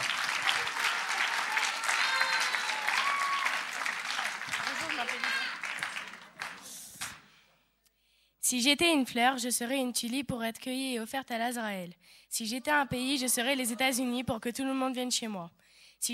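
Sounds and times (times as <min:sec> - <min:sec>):
cheers and voices: 0:00.0 - 0:06.6
audience applause: 0:00.0 - 0:07.2
speech: 0:08.5 - 0:16.1.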